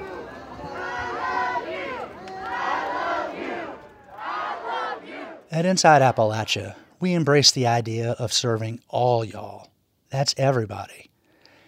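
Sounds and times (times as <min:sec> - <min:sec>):
marchers chanting at a protest: 0:00.0 - 0:06.8
speech: 0:05.5 - 0:11.1.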